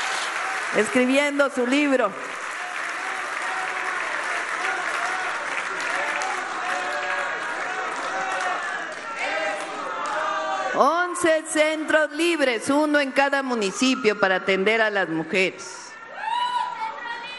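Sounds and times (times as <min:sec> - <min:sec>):
audience applause: 0:00.0 - 0:10.8
speech: 0:00.7 - 0:02.3, 0:10.8 - 0:15.8.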